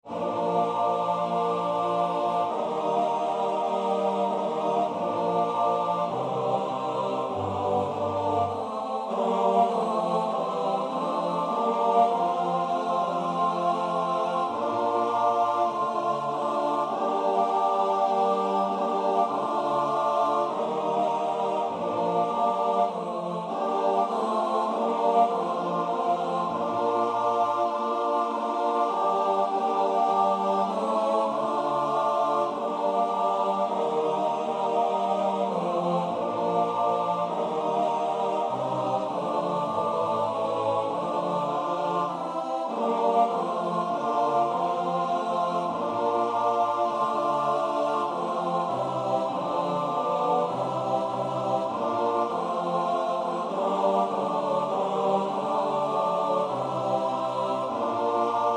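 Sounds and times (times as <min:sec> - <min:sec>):
SATB four-part choir singing: 0:00.0 - 0:58.5.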